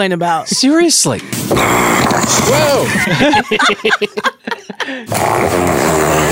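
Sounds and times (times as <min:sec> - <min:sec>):
speech: 0:00.0 - 0:06.3
dog snoring: 0:01.5 - 0:02.6, 0:05.1 - 0:06.3
laughter: 0:02.4 - 0:05.1.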